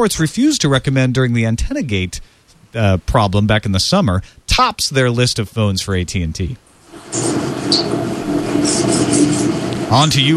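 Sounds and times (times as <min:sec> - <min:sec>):
speech: 0:00.0 - 0:10.3
train passing by: 0:06.8 - 0:10.3.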